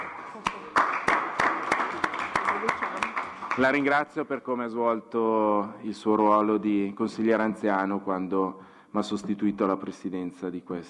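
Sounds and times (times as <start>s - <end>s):
assembly audience applause: 0.0s - 4.0s
speech: 3.6s - 10.8s.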